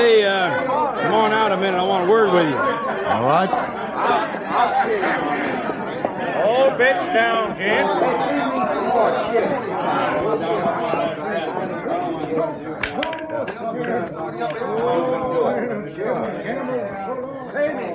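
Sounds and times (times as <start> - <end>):
crowd chatter: 0.0 - 17.9
speech: 1.1 - 17.9.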